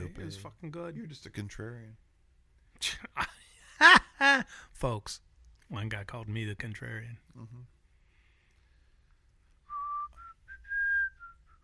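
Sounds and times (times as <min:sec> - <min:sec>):
speech: 0:00.2 - 0:02.1, 0:02.8 - 0:07.8
person whistling a patriotic tune: 0:09.7 - 0:11.6.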